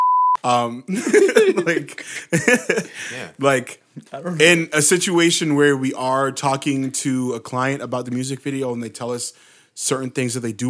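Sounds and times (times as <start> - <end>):
censorship bleep covering a spoken word: 0.0 - 0.4
speech: 0.4 - 10.6
laughter: 0.9 - 3.3.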